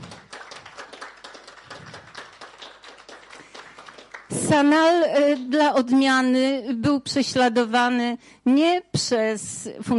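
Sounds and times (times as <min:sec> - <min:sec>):
audience applause: 0:00.0 - 0:04.4
speech: 0:04.5 - 0:09.9.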